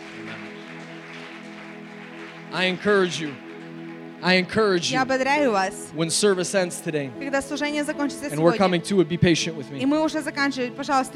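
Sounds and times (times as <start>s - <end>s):
audience applause: 0.0s - 5.1s
speech: 2.5s - 3.4s, 4.2s - 11.1s.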